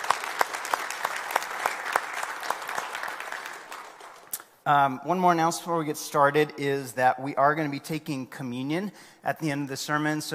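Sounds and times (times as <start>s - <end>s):
audience round of applause: 0.0s - 4.4s
speech: 4.7s - 10.3s.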